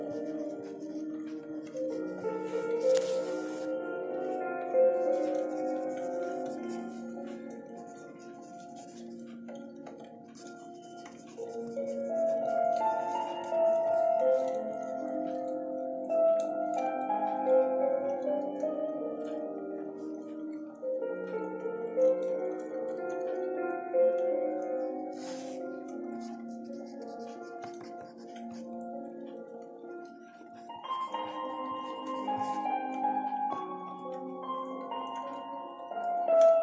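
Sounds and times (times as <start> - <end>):
soft slow dark academia piano chords and melody: 0.0 - 36.6.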